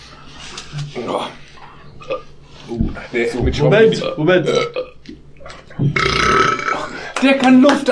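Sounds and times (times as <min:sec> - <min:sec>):
speech: 0:00.7 - 0:01.4, 0:03.0 - 0:04.8, 0:07.2 - 0:07.9
loud burp: 0:04.0 - 0:05.0, 0:05.8 - 0:07.0.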